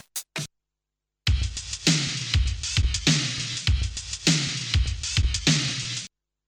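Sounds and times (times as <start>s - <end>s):
Reason 10 electronic music loop: 1.3s - 6.0s.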